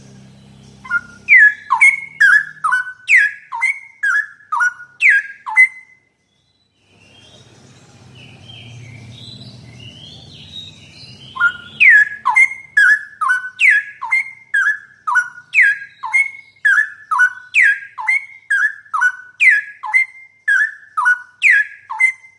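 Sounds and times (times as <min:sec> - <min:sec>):
straw-headed bulbul song: 0:00.0 - 0:22.3.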